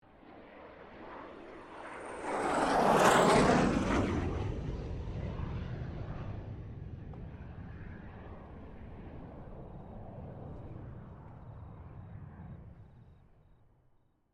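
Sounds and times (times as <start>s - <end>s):
FA-18 Hornet aircraft passing: 0.1s - 13.4s.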